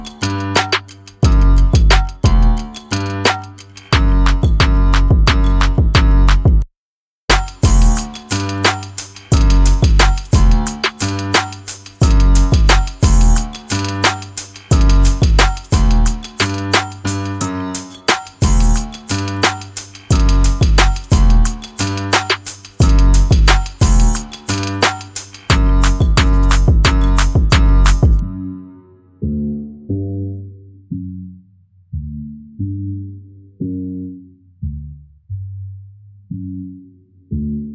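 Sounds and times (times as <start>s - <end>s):
urban underscore music: 0.0s - 6.7s, 7.3s - 28.2s.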